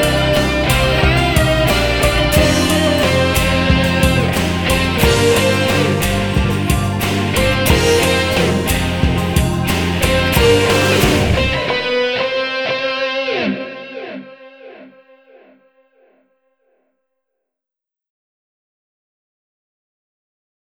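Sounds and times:
instrumental music: 0.0s - 15.5s.

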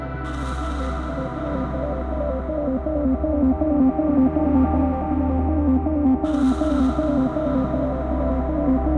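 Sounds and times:
space drum and bass music: 0.2s - 8.9s.

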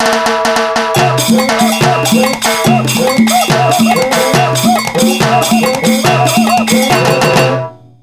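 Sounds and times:
samba music: 0.0s - 7.8s.

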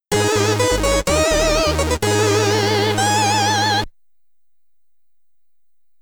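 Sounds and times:
SID chip stereo chiptune music: 0.1s - 3.9s.

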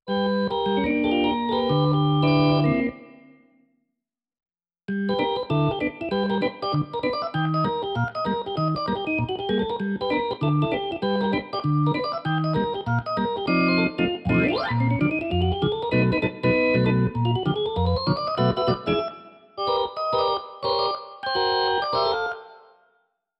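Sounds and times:
organ playing: 0.1s - 3.3s, 4.9s - 22.6s.

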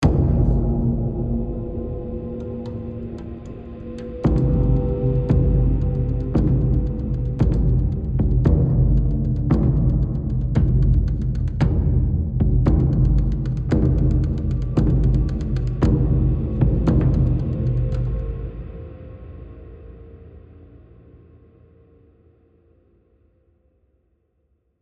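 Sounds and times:
high tension music: 0.0s - 19.8s.

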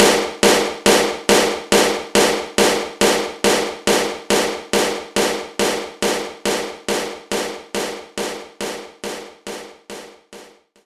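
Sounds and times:
power snare drum: 0.0s - 10.7s.

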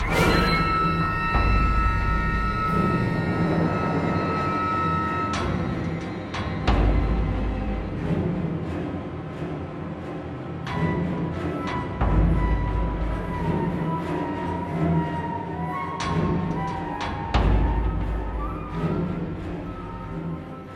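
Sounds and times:
tense music: 0.0s - 20.7s.

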